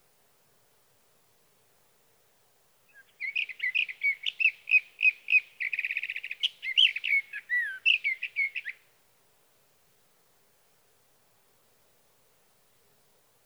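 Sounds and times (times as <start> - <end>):
sage thrasher singing: 2.9 - 8.8.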